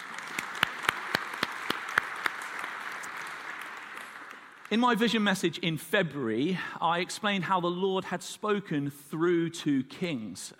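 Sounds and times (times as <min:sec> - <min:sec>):
audience applause: 0:00.0 - 0:05.0
speech: 0:04.7 - 0:10.5.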